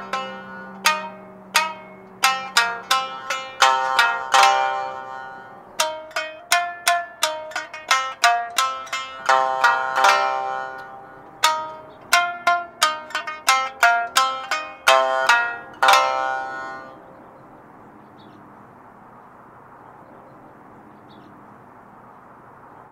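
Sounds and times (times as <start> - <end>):
Japanese shamisen: 0.0 - 18.8.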